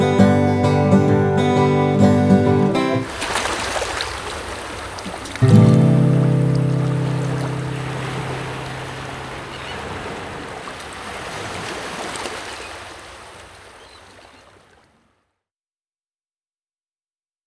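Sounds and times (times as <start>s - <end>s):
instrumental music: 0.0s - 3.1s, 5.4s - 9.1s.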